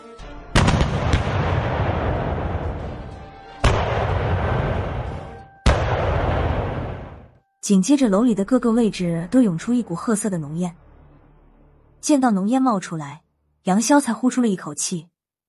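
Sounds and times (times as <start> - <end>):
chain of loud explosions with rolling rumble: 0.5 - 7.4
speech: 7.7 - 10.8, 12.0 - 15.1.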